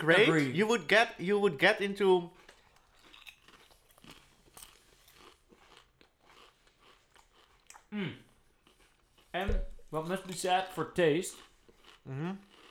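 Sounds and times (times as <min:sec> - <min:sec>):
speech: 0:00.0 - 0:02.4, 0:07.9 - 0:08.2, 0:09.3 - 0:12.5
crunching and chewing on a snack from a bag: 0:02.3 - 0:09.4, 0:10.2 - 0:12.6.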